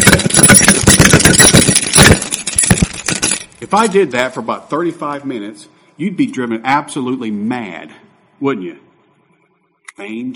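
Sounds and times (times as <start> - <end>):
small set of keys jangling: 0.0 - 3.6
speech: 3.7 - 8.9, 10.0 - 10.3.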